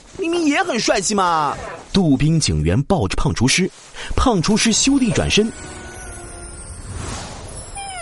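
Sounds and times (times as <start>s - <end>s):
speech: 0.2s - 5.8s
whooshing swell: 5.0s - 7.9s
cat meowing: 7.7s - 7.9s.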